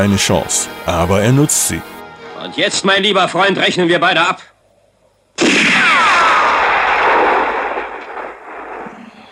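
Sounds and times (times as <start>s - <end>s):
speech: 0.0s - 4.5s, 5.4s - 6.6s
gunfire from a film's final shootout at a cemetery: 5.4s - 9.3s.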